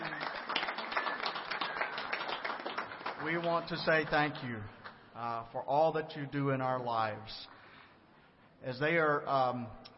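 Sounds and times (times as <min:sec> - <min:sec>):
audience applause: 0:00.0 - 0:03.7
speech: 0:03.2 - 0:07.6, 0:08.6 - 0:09.8.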